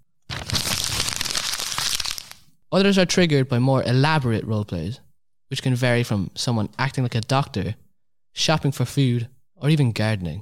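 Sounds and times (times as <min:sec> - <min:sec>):
wrapping paper being crinkled and crushed: 0:00.3 - 0:02.5
speech: 0:02.7 - 0:07.8, 0:08.4 - 0:10.4.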